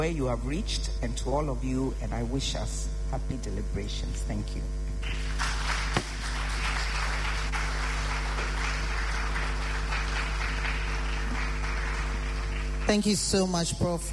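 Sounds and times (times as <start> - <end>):
speech: 0.0 - 5.5, 12.9 - 14.1
low constant hum: 0.0 - 14.1
audience applause after a speech: 5.0 - 13.3.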